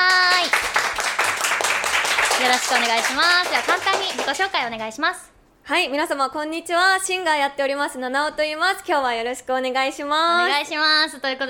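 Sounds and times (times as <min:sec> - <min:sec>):
applause: 0:00.0 - 0:04.7
speech: 0:02.4 - 0:11.4.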